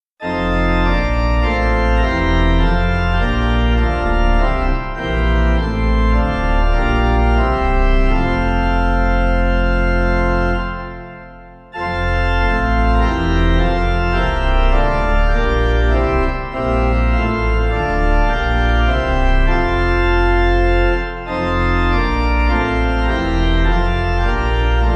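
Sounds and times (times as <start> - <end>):
pipe organ hymn: 0.2 - 24.9.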